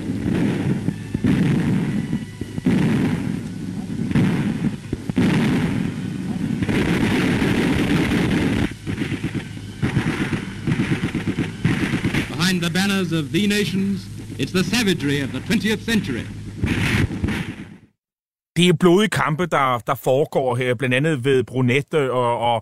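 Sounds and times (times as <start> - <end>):
battlefield artillery and gunfire on a newsreel soundtrack: 0.0 - 17.9
speech: 13.0 - 16.4, 18.6 - 22.6.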